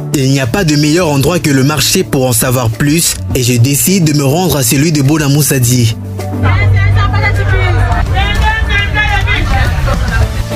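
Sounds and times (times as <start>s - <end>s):
speech: 0.2s - 7.5s
dense crowd chatter in a busy market: 6.4s - 10.5s.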